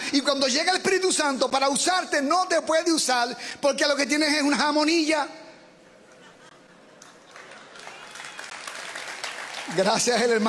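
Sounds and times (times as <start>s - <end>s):
speech: 0.1s - 5.4s, 9.8s - 10.4s
audience applause: 7.0s - 10.4s.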